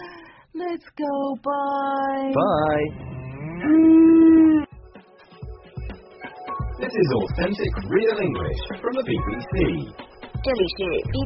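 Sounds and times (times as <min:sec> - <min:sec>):
speech: 0:00.7 - 0:04.6, 0:06.8 - 0:11.2
cows mooing in the countryside: 0:02.8 - 0:04.7.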